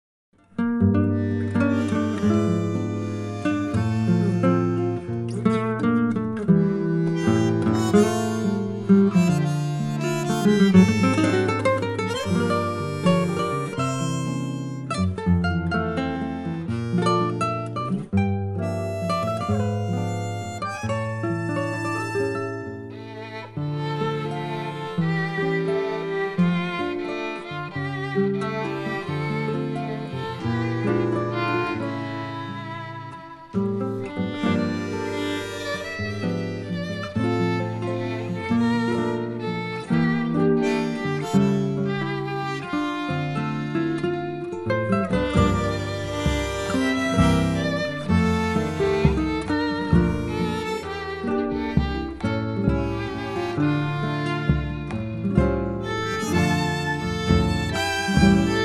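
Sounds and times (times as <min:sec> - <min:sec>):
reference violin playing in D minor: 0:01.1 - 0:05.7, 0:06.6 - 0:58.6.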